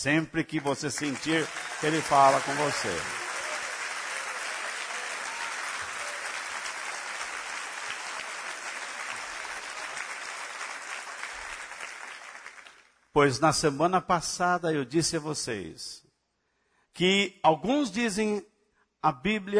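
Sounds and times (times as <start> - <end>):
speech: 0.0 - 3.2, 13.2 - 16.0, 17.0 - 19.5
audience applause: 0.5 - 12.9.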